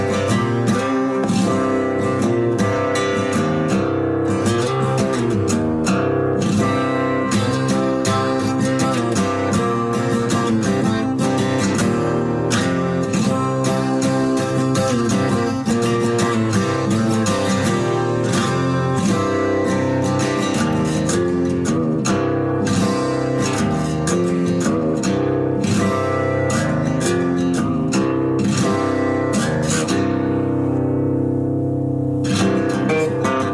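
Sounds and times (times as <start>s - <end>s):
guitar music: 0.0s - 33.5s.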